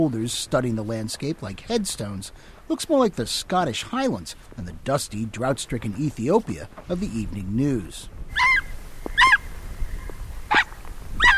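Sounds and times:
speech: 0:00.0 - 0:08.5
Ethiopian wolf yelping at public radio reporters: 0:08.3 - 0:09.5, 0:10.5 - 0:11.3.

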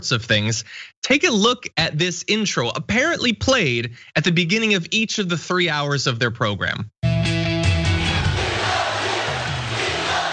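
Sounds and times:
speech: 0:00.0 - 0:07.0
rally crowd shouting: 0:08.0 - 0:10.3.

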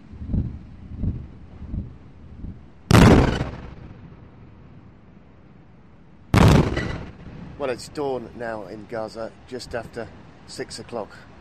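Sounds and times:
heavy shelling blasts, Israeli airstrikes in Gaza: 0:00.3 - 0:04.4, 0:06.3 - 0:08.0
speech: 0:07.6 - 0:11.3.

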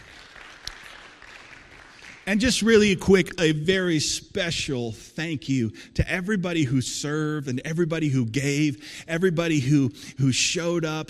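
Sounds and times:
audience applause: 0:00.0 - 0:02.8
speech: 0:02.3 - 0:11.0.

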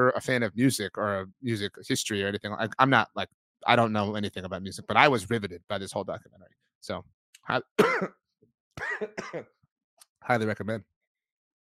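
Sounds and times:
speech: 0:00.0 - 0:08.2, 0:09.0 - 0:09.6, 0:10.2 - 0:10.9
person coughing: 0:07.8 - 0:08.1, 0:08.8 - 0:09.5.

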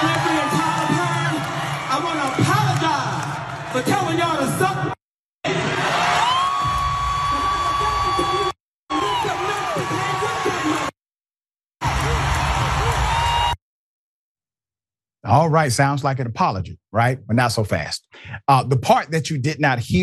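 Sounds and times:
crowd cheering: 0:00.0 - 0:11.0, 0:11.8 - 0:13.6
speech: 0:15.3 - 0:20.0.

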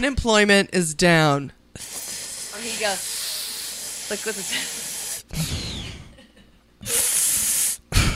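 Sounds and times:
speech: 0:00.0 - 0:02.0, 0:02.6 - 0:03.2, 0:04.1 - 0:05.8
voice imitating breathing in through the teeth: 0:01.8 - 0:06.0, 0:06.8 - 0:08.1.

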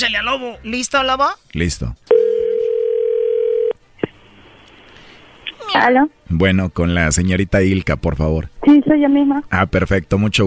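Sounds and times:
speech: 0:00.0 - 0:02.1, 0:05.7 - 0:10.4
telephone dial tone while a call connects: 0:02.1 - 0:03.7.

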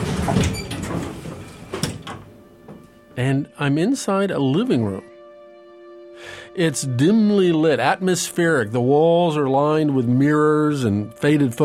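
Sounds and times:
elevator doors sliding open: 0:00.0 - 0:02.9
speech: 0:03.2 - 0:05.1, 0:06.6 - 0:11.6.

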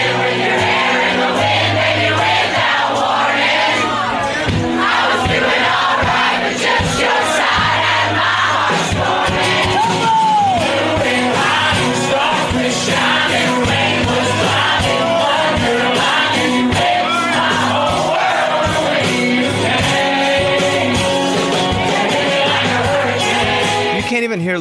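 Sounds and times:
bar crowd singing along to a live song: 0:00.0 - 0:24.1
band playing sustained chords: 0:00.0 - 0:24.5
shouts and whoops: 0:09.7 - 0:10.8.

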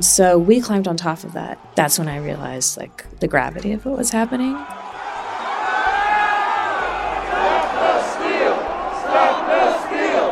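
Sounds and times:
speech: 0:00.0 - 0:04.9
large crowd shouting while storming a building: 0:04.3 - 0:10.3.

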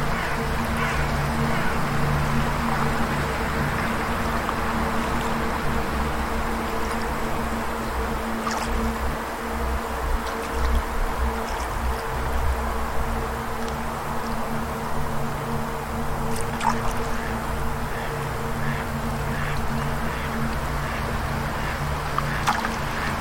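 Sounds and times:
low hum of held tones: 0:00.0 - 0:23.1.

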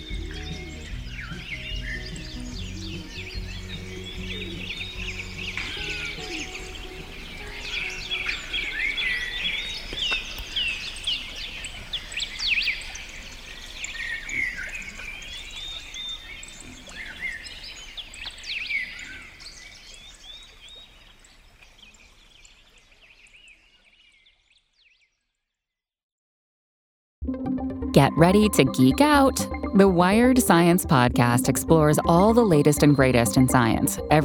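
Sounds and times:
birds chirping and singing: 0:00.0 - 0:20.4
speech: 0:28.0 - 0:34.2.

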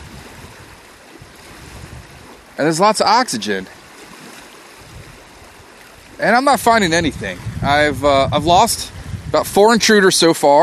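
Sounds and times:
shallow stream riffle water flowing over rocks: 0:00.0 - 0:07.0
speech: 0:02.6 - 0:03.8, 0:06.2 - 0:10.6.

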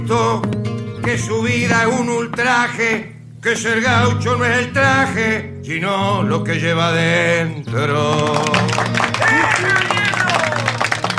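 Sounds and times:
speech: 0:00.1 - 0:09.9
crowd applause: 0:08.2 - 0:11.1
voices calling and cheering: 0:09.1 - 0:11.0.

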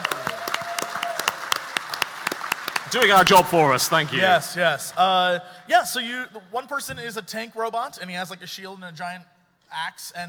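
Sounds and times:
audience applause: 0:00.0 - 0:04.6
speech: 0:02.9 - 0:10.2.

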